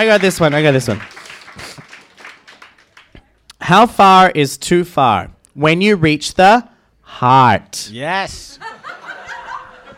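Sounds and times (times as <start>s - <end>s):
speech: 0.0s - 1.2s, 3.7s - 8.7s
round of applause: 0.0s - 3.6s
laughter: 8.6s - 9.9s.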